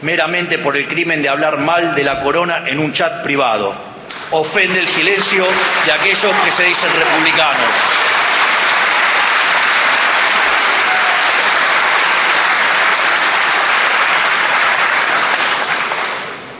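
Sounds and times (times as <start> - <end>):
speech: 0.0 - 8.0
audience applause: 4.6 - 16.5.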